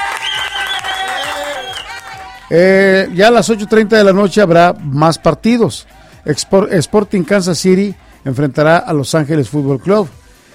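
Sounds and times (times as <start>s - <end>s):
applause: 0.0s - 2.5s
speech: 2.5s - 10.2s.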